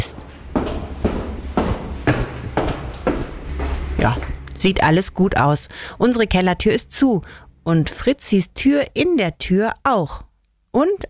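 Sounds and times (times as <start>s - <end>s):
footsteps walking down to the cellar: 0.0s - 4.9s
speech: 4.0s - 11.0s.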